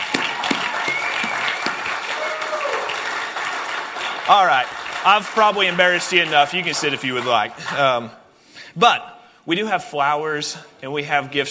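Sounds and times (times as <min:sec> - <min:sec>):
audience applauding: 0:00.0 - 0:08.1
faint whistles and cheers: 0:00.4 - 0:03.5
speech: 0:04.3 - 0:11.5.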